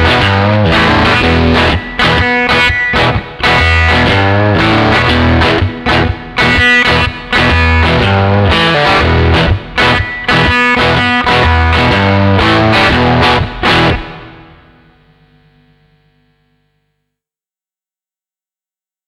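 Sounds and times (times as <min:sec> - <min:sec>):
overdriven blues guitar: 0:00.0 - 0:15.2.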